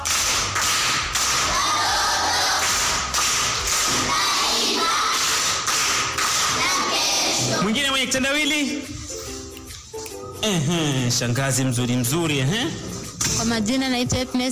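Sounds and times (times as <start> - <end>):
primary school group applause at Kilimani for a child who solved a riddle: 0.0 - 7.0
speech: 8.0 - 9.0, 10.4 - 14.5.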